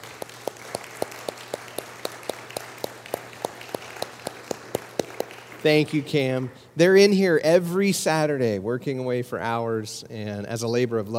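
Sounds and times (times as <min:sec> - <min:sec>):
audience applauding: 0:00.0 - 0:06.5
sharp rhythmic claps: 0:00.0 - 0:06.7
speech: 0:05.6 - 0:11.1.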